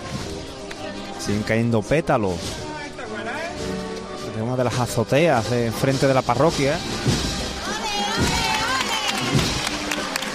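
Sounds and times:
speech: 0:01.2 - 0:02.6, 0:04.4 - 0:07.3
devotees shouting and raised voices during a procession: 0:06.8 - 0:10.3
crowd of devotees of the Virgen del Refugio applauding during a procession: 0:07.7 - 0:10.3.

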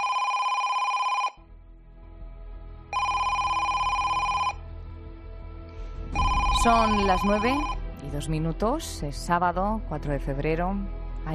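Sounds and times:
telephone ringing: 0:00.0 - 0:01.4, 0:03.0 - 0:04.6, 0:06.2 - 0:07.8
speech: 0:06.6 - 0:11.3.

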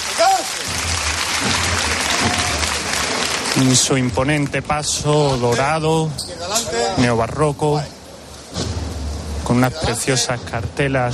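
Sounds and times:
applause: 0:00.0 - 0:04.8
speech: 0:03.6 - 0:08.0, 0:09.5 - 0:11.1.

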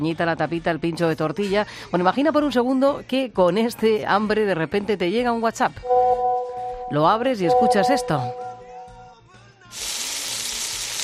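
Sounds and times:
speech: 0:00.0 - 0:06.1, 0:06.9 - 0:08.4, 0:09.7 - 0:10.0
food sizzling while cooking: 0:09.7 - 0:11.0.

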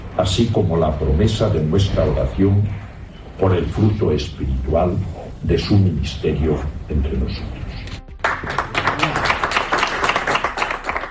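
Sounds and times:
speech: 0:00.2 - 0:02.8, 0:03.4 - 0:07.6
crowd applause: 0:08.2 - 0:11.0.

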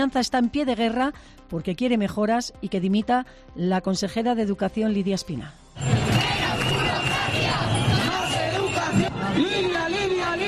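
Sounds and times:
speech: 0:00.0 - 0:06.3
protesters shouting at a street demonstration in Oviedo: 0:05.8 - 0:10.4.

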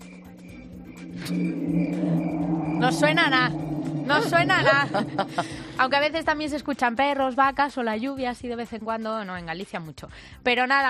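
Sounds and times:
car engine droning and revving at a pedestrian crossing: 0:00.0 - 0:06.5
thin high constant tone at a pedestrian crossing: 0:00.0 - 0:06.9
speech: 0:01.2 - 0:10.8.

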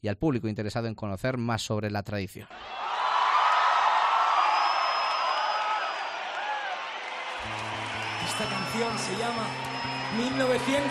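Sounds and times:
speech: 0:00.0 - 0:02.9, 0:08.4 - 0:10.8
concert audience cheering and whooping: 0:02.5 - 0:10.8.

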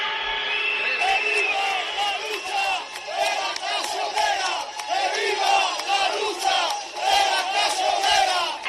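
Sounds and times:
whistles: 0:00.0 - 0:03.1
protest crowd chanting and shouting in the street: 0:00.0 - 0:08.6.

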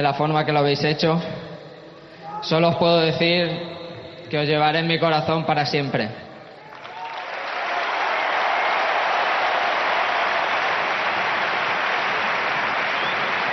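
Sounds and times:
speech: 0:00.0 - 0:01.4, 0:02.4 - 0:06.2
stadium crowd ovation at Camp Nou: 0:06.4 - 0:13.5.

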